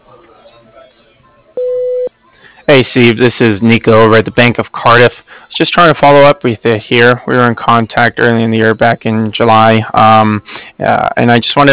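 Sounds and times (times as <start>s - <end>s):
voicemail tone beep: 1.6s - 2.1s
speech: 2.7s - 11.7s.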